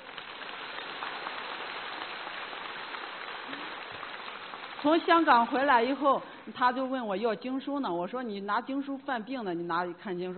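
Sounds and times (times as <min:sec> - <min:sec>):
crowd applause: 0:00.0 - 0:05.4
speech: 0:04.8 - 0:10.3.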